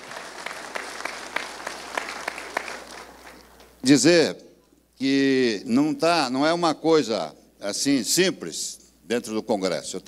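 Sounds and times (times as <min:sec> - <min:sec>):
audience applause: 0:00.0 - 0:03.7
speech: 0:03.8 - 0:04.4, 0:05.0 - 0:10.0.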